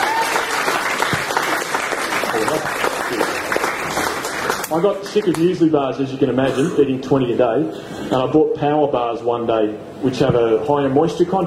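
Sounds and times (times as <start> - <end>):
audience applause: 0.0 - 5.4
speech: 2.4 - 3.3, 4.7 - 11.4.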